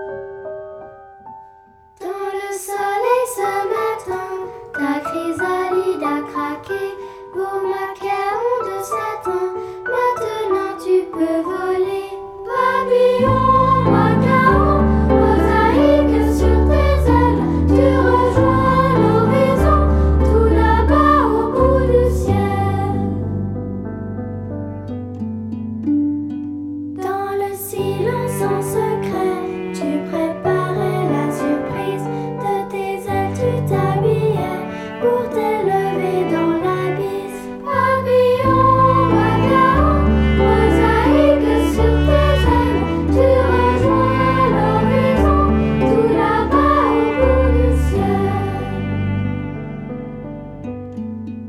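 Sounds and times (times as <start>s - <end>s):
vocal version: 2.0s - 23.9s, 26.9s - 49.8s.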